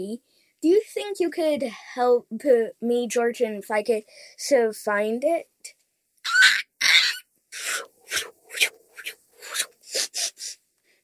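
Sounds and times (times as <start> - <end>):
speech: 0.0 - 5.5
creature sniffing: 7.6 - 10.6.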